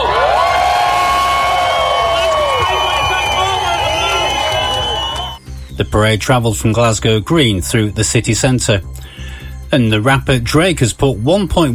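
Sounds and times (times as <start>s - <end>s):
crowd cheering at the Glasgow Pride parade: 0.0s - 5.4s
high whoops and shouts: 0.0s - 5.4s
speech: 6.0s - 11.7s.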